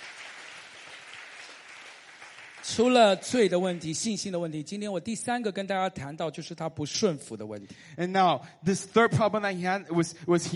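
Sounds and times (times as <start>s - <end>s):
faint clapping from a church congregation: 0.0s - 4.6s
speech: 2.6s - 10.5s.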